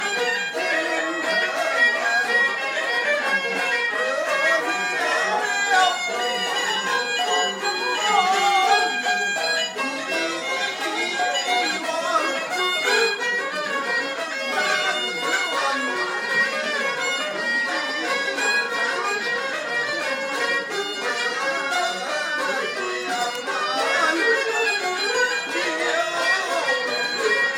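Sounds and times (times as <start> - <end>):
Beijing street music: 0.0 - 27.5.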